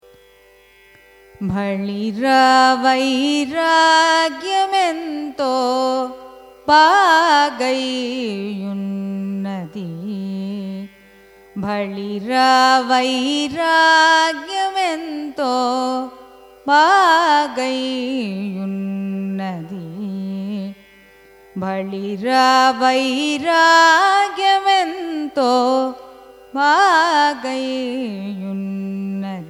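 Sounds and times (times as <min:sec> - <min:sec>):
Carnatic raga music: 0:00.0 - 0:29.4.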